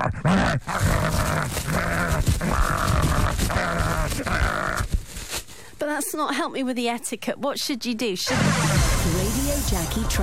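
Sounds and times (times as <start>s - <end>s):
voice imitating dogs attacking a door: 0.0s - 4.9s
speech: 5.9s - 10.2s.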